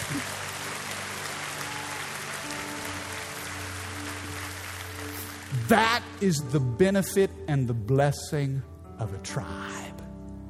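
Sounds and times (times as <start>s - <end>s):
people clapping: 0.0s - 6.2s
speech: 5.7s - 10.0s.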